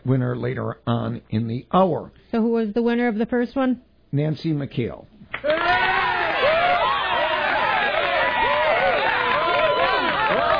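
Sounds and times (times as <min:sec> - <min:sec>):
speech: 0:00.0 - 0:05.8
applause sound effect: 0:05.4 - 0:10.5.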